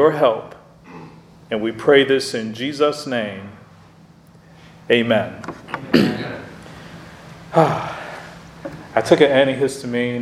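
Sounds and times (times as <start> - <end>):
speech: 0.0 - 0.6, 1.5 - 3.6, 4.9 - 6.4, 7.5 - 7.9, 9.0 - 10.1
person coughing: 0.9 - 1.2, 5.8 - 6.5.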